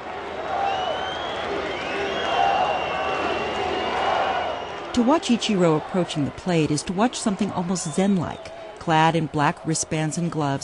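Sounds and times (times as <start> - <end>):
scattered clapping: 0.0 - 9.8
baseball stadium crowd cheering and roaring: 0.0 - 10.6
whistles: 0.6 - 5.0
speech: 5.0 - 10.6.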